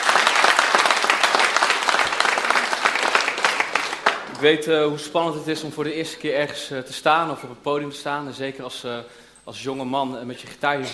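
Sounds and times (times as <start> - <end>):
audience applause in church: 0.0 - 4.3
speech: 4.4 - 10.9.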